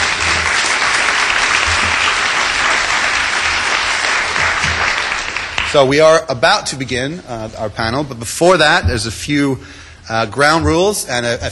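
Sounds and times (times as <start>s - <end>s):
audience applause: 0.0s - 5.8s
speech: 5.7s - 11.5s.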